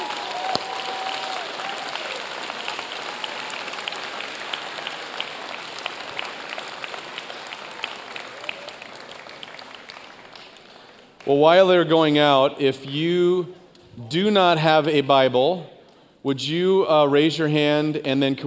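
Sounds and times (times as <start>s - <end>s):
audience applause for kids: 0.0s - 11.2s
speech: 11.3s - 18.4s.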